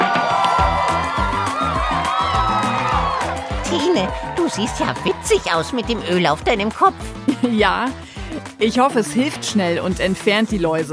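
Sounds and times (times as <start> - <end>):
applause: 0.0 - 6.9
cheering: 0.0 - 7.0
speech: 3.7 - 10.9.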